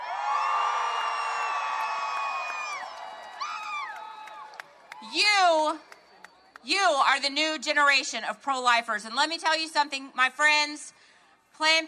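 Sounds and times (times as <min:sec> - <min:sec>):
crowd cheering and yelling: 0:00.0 - 0:05.2
speech: 0:05.1 - 0:06.0, 0:06.6 - 0:11.0, 0:11.6 - 0:11.8.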